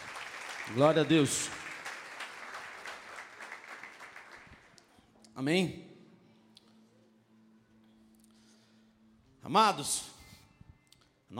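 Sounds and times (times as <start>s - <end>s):
round of applause: 0.0s - 4.9s
speech: 0.7s - 1.6s, 5.4s - 5.9s, 9.5s - 10.2s.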